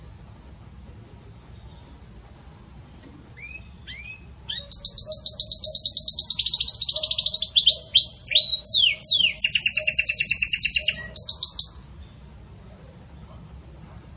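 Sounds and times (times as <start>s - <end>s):
Belgian canary song of fast rattling trills: 3.4s - 12.4s.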